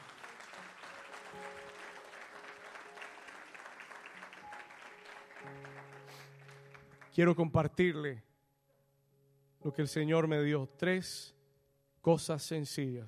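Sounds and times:
audience applause: 0.0 - 7.2
speech: 7.2 - 8.3, 9.6 - 11.4, 12.0 - 13.0.

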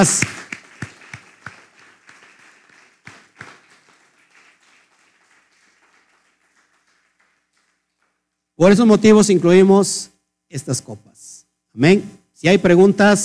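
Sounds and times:
speech: 0.0 - 0.4, 8.6 - 13.2
audience applause: 0.0 - 8.2.

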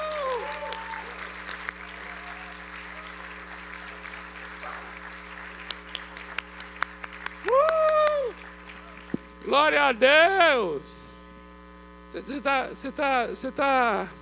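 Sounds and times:
audience applause: 0.0 - 9.3
low constant hum: 0.0 - 14.2
speech: 9.5 - 11.0, 12.1 - 14.2.

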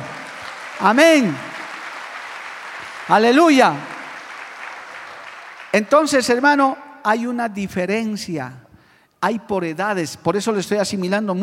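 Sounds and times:
audience applauding: 0.0 - 6.4
speech: 0.8 - 1.5, 3.1 - 3.9, 5.7 - 8.6, 9.2 - 11.4.

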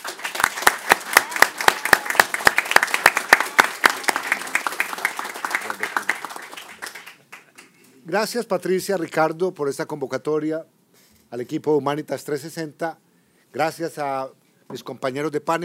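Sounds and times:
audience applause: 0.0 - 7.7
speech: 8.1 - 15.6.

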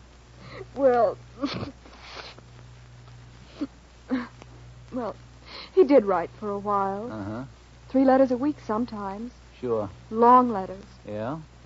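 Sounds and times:
low steady hum: 0.0 - 11.6
speech: 0.8 - 1.7, 5.8 - 11.5
sniffing: 1.5 - 2.4
person blowing nose: 1.9 - 2.4.

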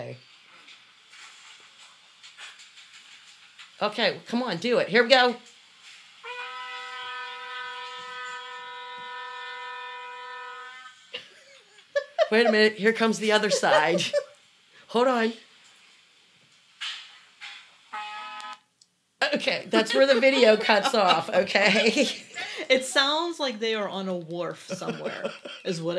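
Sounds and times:
speech: 0.1 - 0.4, 3.8 - 5.5, 12.3 - 14.2, 14.9 - 15.4, 19.4 - 25.9
shofar being blown: 6.2 - 11.0, 17.9 - 18.7
laughter: 11.2 - 14.3, 19.7 - 22.7, 24.6 - 25.9.

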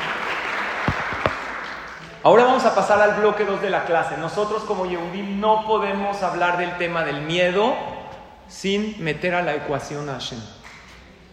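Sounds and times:
audience applause: 0.0 - 2.1
speech: 2.2 - 7.9, 8.5 - 10.6.

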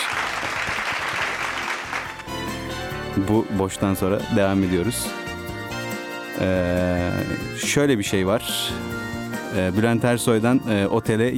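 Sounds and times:
audience applause: 0.0 - 2.4
speech: 3.2 - 5.2, 6.4 - 11.3.

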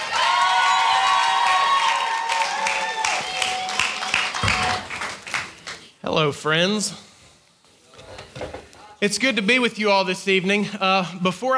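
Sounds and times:
crowd cheering and whooping: 0.0 - 5.3
audience applause: 0.0 - 5.9
speech: 6.1 - 7.1, 9.0 - 11.5.

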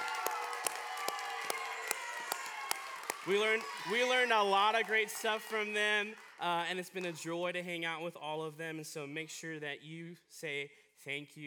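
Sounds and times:
audience round of applause: 0.0 - 7.3
speech: 3.2 - 11.4.

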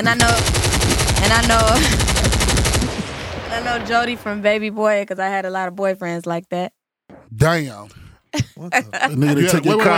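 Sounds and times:
speech: 0.0 - 9.9
automatic gunfire: 0.2 - 4.4.

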